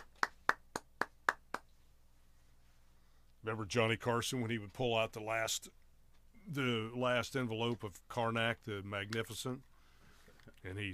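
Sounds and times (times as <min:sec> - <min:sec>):
one person clapping hands as mock applause: 0:00.0 - 0:01.8
speech: 0:03.4 - 0:05.8, 0:06.4 - 0:09.7, 0:10.6 - 0:10.9.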